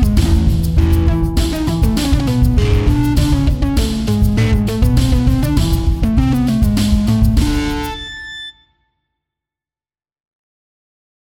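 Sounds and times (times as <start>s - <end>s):
polska dance tune: 0.0s - 8.5s.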